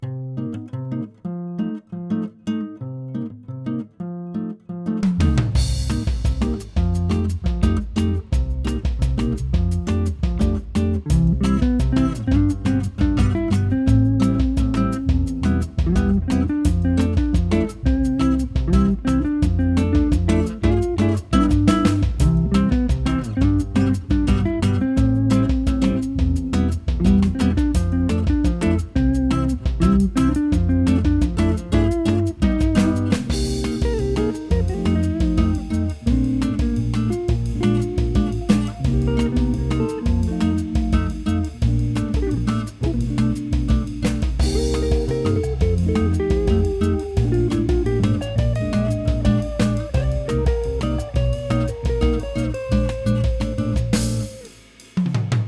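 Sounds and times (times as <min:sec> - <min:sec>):
bossa nova music: 0:00.0 - 0:55.4.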